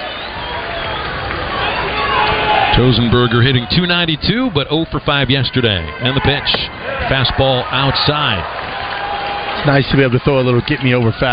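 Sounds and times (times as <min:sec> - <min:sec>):
baseball crowd cheering: 0:00.0 - 0:11.3
speech: 0:02.8 - 0:08.7, 0:09.6 - 0:11.3.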